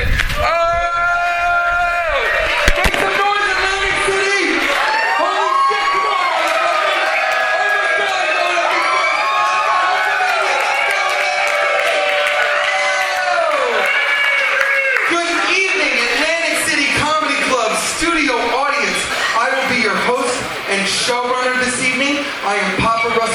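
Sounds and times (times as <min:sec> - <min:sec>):
whoops and shouts: 0:00.3 - 0:02.7, 0:04.7 - 0:15.1
comedy club audience in Atlantic City cheering and applauding for the host: 0:00.3 - 0:23.3
laughter: 0:18.3 - 0:21.2.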